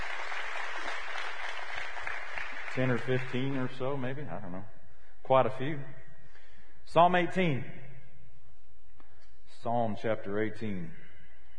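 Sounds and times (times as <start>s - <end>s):
congregation at a church service clapping for newcomers: 0.0s - 4.1s
speech: 2.8s - 6.0s, 6.9s - 7.8s, 9.6s - 11.0s.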